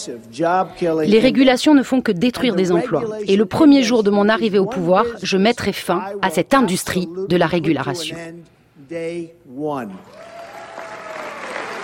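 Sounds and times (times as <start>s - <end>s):
speech: 0.0s - 10.3s
timid audience applause: 10.1s - 11.8s.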